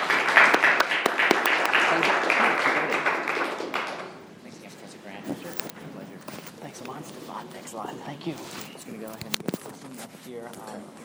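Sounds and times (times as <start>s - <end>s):
audience applause: 0.0s - 4.2s
speech: 10.2s - 11.0s.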